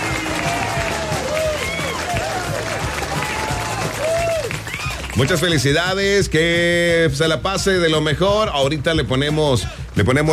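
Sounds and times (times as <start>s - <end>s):
voices calling and whooping: 0.0s - 5.3s
applause: 0.0s - 5.8s
speech: 5.2s - 10.3s.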